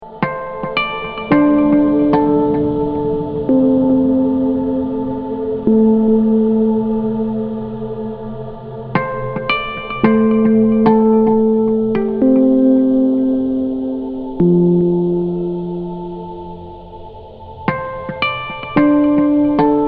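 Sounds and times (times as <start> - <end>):
harmonics: 0.0 - 19.8.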